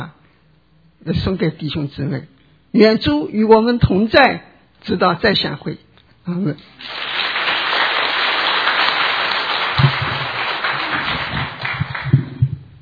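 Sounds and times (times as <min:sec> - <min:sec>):
speech: 0:01.0 - 0:07.1
audience applause: 0:06.8 - 0:12.4.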